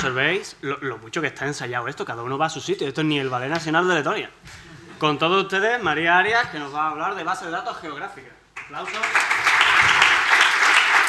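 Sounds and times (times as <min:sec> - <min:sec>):
speech: 0:00.0 - 0:09.5
audience applause welcoming a presenter at a talk on geographic databases: 0:08.6 - 0:11.0.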